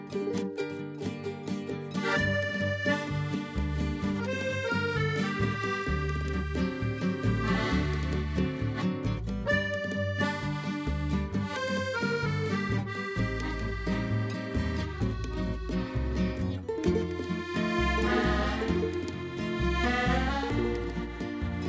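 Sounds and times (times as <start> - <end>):
tango music: 0.3 - 21.6.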